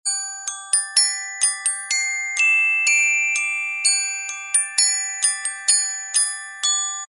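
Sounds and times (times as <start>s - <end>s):
long music box melody: 0.1s - 7.1s
orchestra bells: 0.1s - 7.1s.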